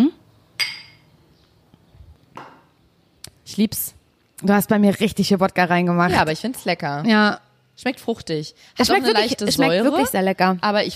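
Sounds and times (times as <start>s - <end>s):
glasses clinking in a toast with a vodka drink: 0.6s - 1.1s
speech: 3.5s - 10.9s.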